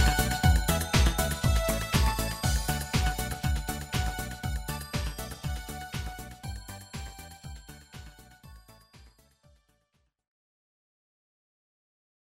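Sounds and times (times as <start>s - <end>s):
instrumental backing track: 0.0s - 9.1s.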